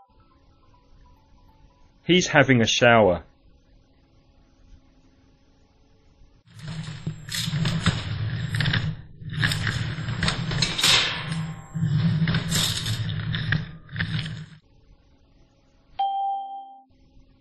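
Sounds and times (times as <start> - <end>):
speech: 2.1 - 3.3
furniture being moved: 6.5 - 14.6.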